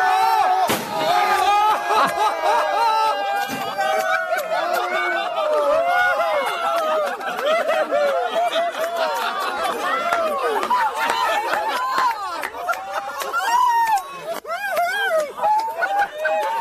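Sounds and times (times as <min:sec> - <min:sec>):
laughter: 0:00.2 - 0:16.5
car dropped from a crane crashing: 0:00.7 - 0:01.4.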